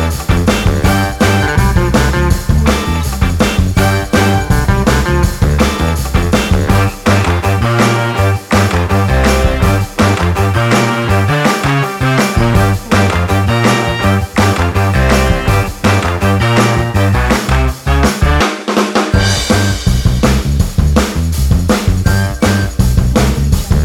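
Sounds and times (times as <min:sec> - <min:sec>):
happy energetic old school funk music: 0:00.0 - 0:23.8.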